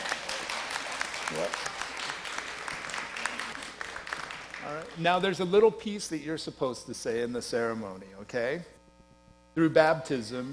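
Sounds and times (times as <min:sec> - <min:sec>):
audience applauding: 0:00.0 - 0:05.4
speech: 0:01.3 - 0:01.8, 0:04.7 - 0:08.8, 0:09.6 - 0:10.5.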